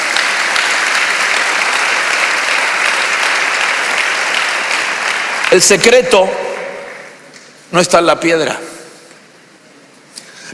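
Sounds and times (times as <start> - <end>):
audience clapping: 0.0 - 7.7
speech: 5.5 - 6.5, 7.7 - 8.7.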